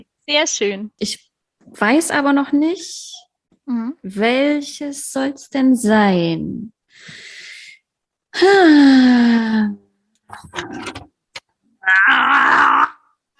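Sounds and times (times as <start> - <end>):
speech: 0.3 - 7.2, 8.4 - 11.1
person groaning with effort opening a pickle jar: 11.8 - 13.3.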